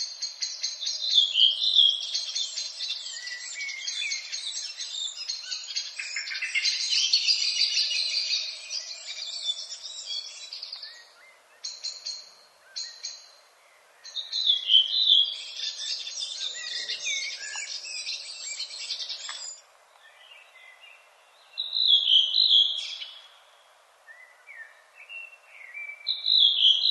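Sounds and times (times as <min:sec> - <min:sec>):
redwing thrush: 0:00.0 - 0:26.8.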